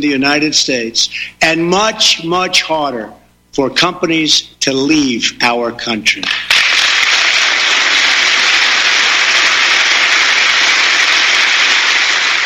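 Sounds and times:
speech: 0.0s - 6.5s
audience applause: 6.5s - 12.4s.

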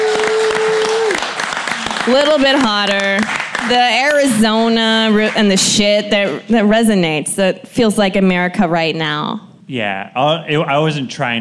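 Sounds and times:
audience applause: 0.0s - 6.5s
speech: 2.1s - 11.4s.

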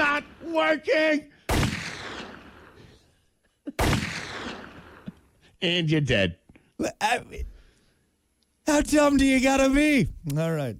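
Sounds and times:
speech: 0.6s - 1.4s, 5.6s - 7.5s, 8.7s - 10.7s
shotgun blasts in a video game: 1.5s - 2.8s, 3.8s - 5.0s.

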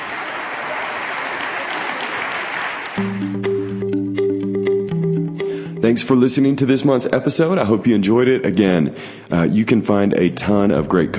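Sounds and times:
crowd applauding: 0.0s - 3.8s
speech: 3.0s - 3.5s, 5.8s - 11.1s
sustained musical notes: 3.0s - 8.2s.

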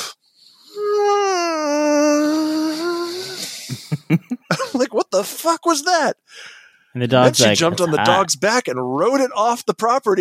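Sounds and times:
person imitating a cat's closed-mouth sighing noise: 0.7s - 4.0s, 7.2s - 8.3s
laughter: 3.5s - 5.8s, 7.2s - 8.5s
speech: 4.1s - 4.3s, 5.2s - 10.1s
breathy puff: 6.3s - 6.7s.

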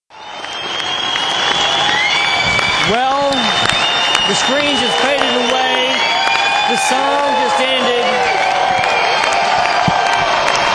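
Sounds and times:
large concert crowd cheering and applauding: 0.1s - 10.7s
faint whistles: 0.2s - 6.7s
speech: 2.9s - 3.7s, 4.3s - 5.8s, 6.7s - 8.4s.

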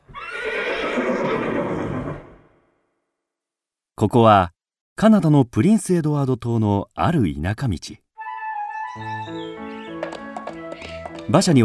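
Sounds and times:
horse neighing by a carriage: 0.0s - 2.4s
speech: 4.0s - 8.0s, 8.9s - 10.0s, 10.8s - 11.6s.

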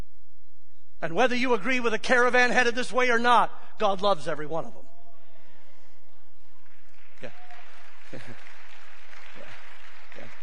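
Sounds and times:
speech: 1.0s - 4.9s
audience applause: 6.6s - 10.4s.

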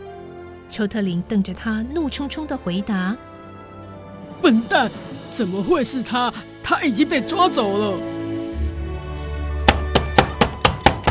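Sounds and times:
speech: 0.7s - 3.3s, 4.4s - 8.1s
knocking on a door: 9.7s - 11.0s.

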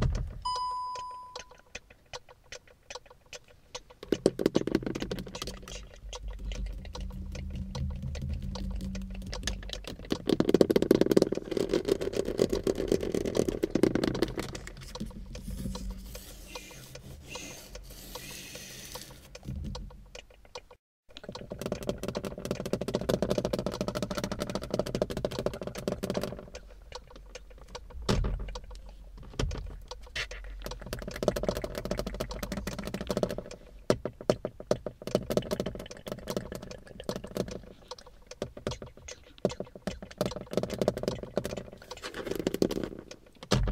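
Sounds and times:
brief tone: 0.4s - 1.7s
tapping and scratching inside a car: 1.4s - 43.6s
low steady rumble: 5.5s - 10.3s.

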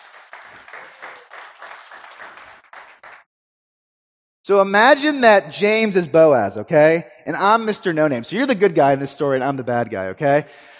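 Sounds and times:
audience applause: 0.0s - 3.2s
speech: 4.5s - 10.7s.

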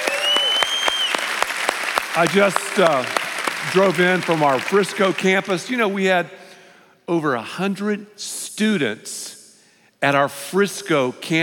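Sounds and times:
high whistle: 0.0s - 1.4s
audience applause: 0.0s - 5.6s
speech: 2.2s - 6.4s, 7.1s - 9.2s, 10.0s - 11.4s.

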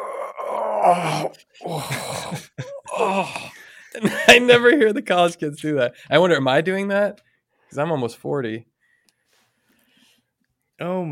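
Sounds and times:
man imitating men groaning in a gym locker room: 0.0s - 3.8s
speech: 0.8s - 8.7s, 10.8s - 11.1s.

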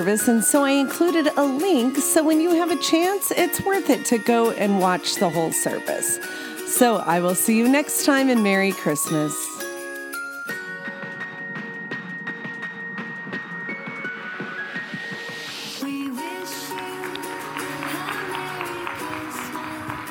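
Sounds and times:
speech: 0.0s - 9.4s
bright sustained instrumental music: 0.0s - 20.0s
audience clapping: 16.1s - 20.0s.

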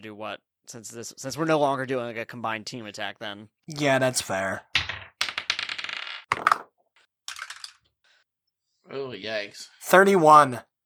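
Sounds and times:
speech: 0.0s - 4.7s, 8.9s - 10.7s
dice rolled for initiative in a tabletop role-playing game: 4.8s - 6.7s, 7.3s - 7.8s.

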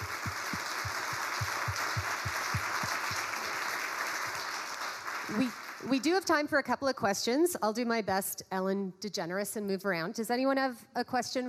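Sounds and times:
audience applause: 0.0s - 6.0s
speech: 5.3s - 11.4s.

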